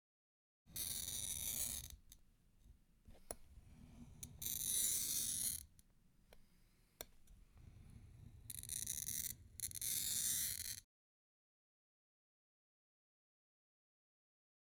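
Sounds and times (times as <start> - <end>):
glass cutter scoring glass: 0.7 - 2.2, 3.3 - 5.7, 7.7 - 10.8.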